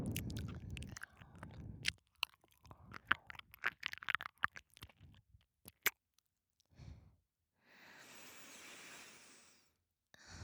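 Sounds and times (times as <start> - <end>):
breath blowing: 0.1 - 1.6, 2.2 - 4.9
ear licking sounds: 0.1 - 6.0.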